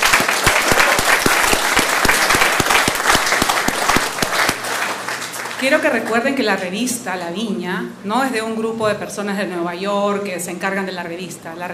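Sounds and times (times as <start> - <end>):
crowd applauding: 0.0 - 6.3
speech: 5.6 - 11.7.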